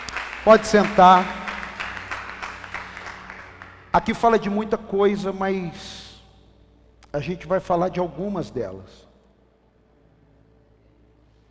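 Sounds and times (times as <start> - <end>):
crowd applauding: 0.0 - 4.7
speech: 0.4 - 1.4, 3.9 - 6.0, 7.1 - 9.1.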